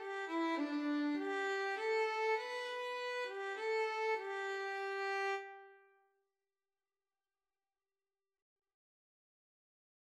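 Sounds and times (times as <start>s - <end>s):
violin and cello duet playing a hymn: 0.0s - 5.4s.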